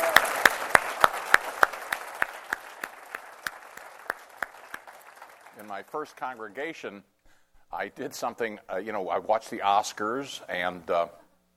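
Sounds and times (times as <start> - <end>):
audience applause: 0.0 - 6.5
speech: 5.6 - 7.1, 7.7 - 11.2.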